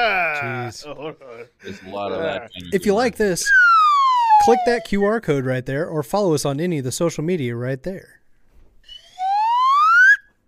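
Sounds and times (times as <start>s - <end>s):
laughter: 0.0s - 2.6s
speech: 0.0s - 3.8s, 4.4s - 8.2s
slide whistle: 3.4s - 5.0s, 8.8s - 10.3s.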